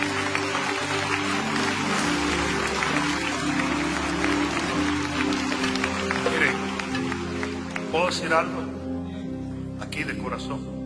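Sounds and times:
steady applause from a large audience: 0.0 - 8.6
speech: 8.1 - 8.7, 10.0 - 10.7.

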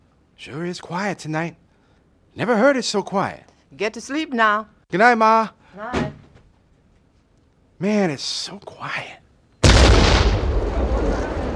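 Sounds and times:
speech: 0.4 - 1.6, 2.4 - 6.0, 7.8 - 9.2
explosion: 9.6 - 11.5.

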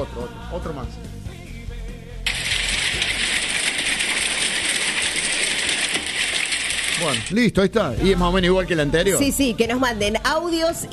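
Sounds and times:
speech: 0.0 - 1.2, 7.0 - 10.9
hail falling: 2.3 - 7.4.

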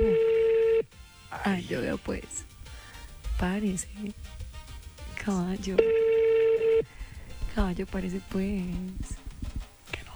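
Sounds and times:
telephone ringback tone of unanswered call: 0.0 - 0.9, 5.7 - 6.9
speech: 1.4 - 2.5, 3.4 - 4.4, 5.2 - 6.0, 7.6 - 9.2.

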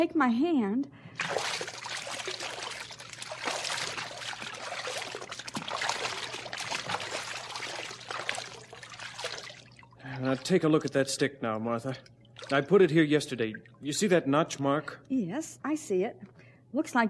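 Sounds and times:
speech: 0.0 - 1.6, 10.2 - 17.0
wading through shallow water: 1.1 - 11.0, 12.2 - 12.8.

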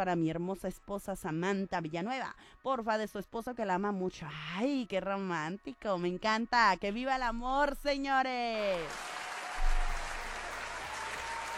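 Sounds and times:
speech: 0.0 - 9.1
audience applause: 8.7 - 11.5.

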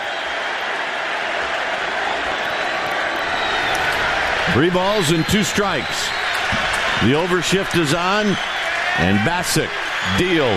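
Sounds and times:
stadium crowd cheering: 0.0 - 10.5
speech: 4.5 - 10.5.

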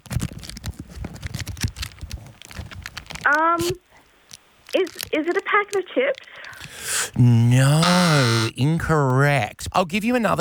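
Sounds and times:
tuna tin packaging crinkling as it is unwrapped: 0.0 - 6.8
speech: 3.3 - 3.9, 4.7 - 6.4, 7.0 - 10.3.

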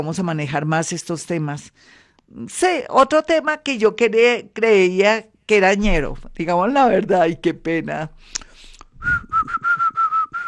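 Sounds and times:
speech: 0.0 - 8.4
person whistling a short tune: 9.0 - 10.4.

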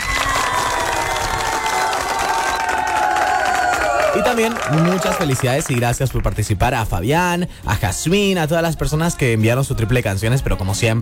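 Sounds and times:
crowd cheering and applauding: 0.0 - 6.3
speech: 4.3 - 11.0.

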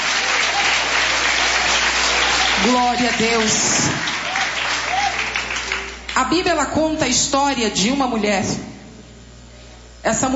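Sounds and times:
church congregation applauding during a worship service: 0.0 - 6.3
speech: 2.6 - 4.1, 6.2 - 8.7, 10.0 - 10.3.

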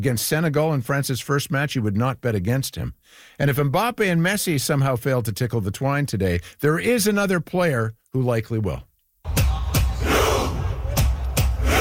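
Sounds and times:
speech: 0.0 - 9.4
Norwegian football fans shouting a chant: 9.3 - 11.7
World Cup crowd roar: 9.3 - 11.7.

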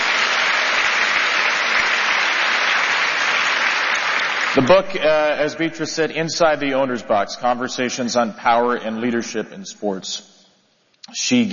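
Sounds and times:
audience applause: 0.0 - 4.8
speech: 4.5 - 10.3, 11.1 - 11.5.

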